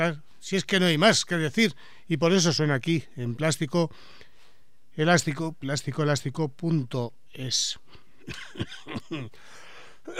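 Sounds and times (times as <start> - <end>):
speech: 0.0 - 4.3, 5.0 - 10.1
person coughing after singing: 8.3 - 9.3.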